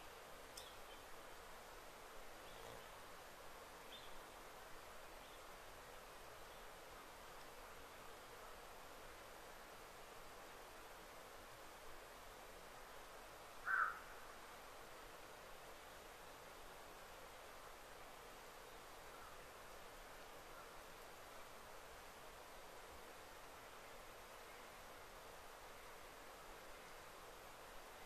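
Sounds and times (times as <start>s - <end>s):
soft hiss of air in deep wild: 0.0s - 28.0s
faint ticks: 0.5s - 1.0s, 7.2s - 7.6s
bird chirp: 2.4s - 3.0s.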